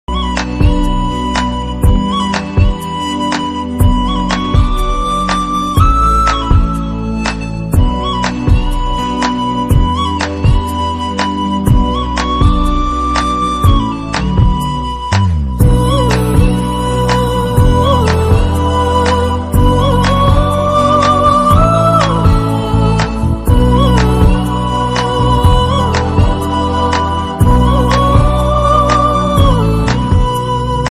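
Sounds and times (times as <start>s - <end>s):
Tamil love background music ringtone: 0.1s - 30.8s.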